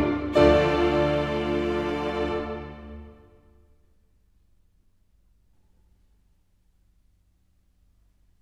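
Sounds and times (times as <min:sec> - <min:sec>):
string orchestra in a mazurka: 0:00.0 - 0:03.5
piano in a mazurka: 0:00.0 - 0:03.9.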